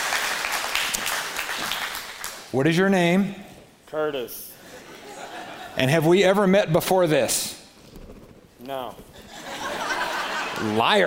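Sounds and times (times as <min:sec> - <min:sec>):
audience clapping for volunteers: 0:00.0 - 0:02.5
speech: 0:02.5 - 0:04.5, 0:05.8 - 0:07.6, 0:08.6 - 0:09.1, 0:10.6 - 0:11.0
laughter: 0:04.6 - 0:06.1, 0:09.1 - 0:11.0.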